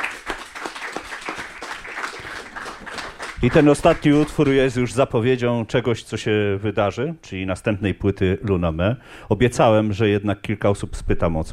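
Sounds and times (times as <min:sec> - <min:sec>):
audience applause: 0:00.0 - 0:04.7
speech: 0:03.4 - 0:11.5.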